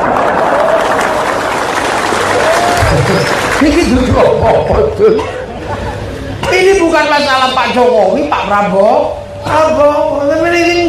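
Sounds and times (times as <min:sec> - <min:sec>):
crowd applauding: 0:00.0 - 0:04.3
speech: 0:03.1 - 0:05.4, 0:06.6 - 0:10.8.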